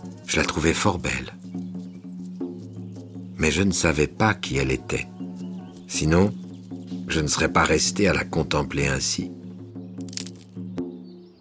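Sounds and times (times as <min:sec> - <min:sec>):
speech: 0:00.3 - 0:01.4, 0:03.4 - 0:05.1, 0:05.9 - 0:06.4, 0:07.1 - 0:09.4
tree branch cracking: 0:10.0 - 0:10.9.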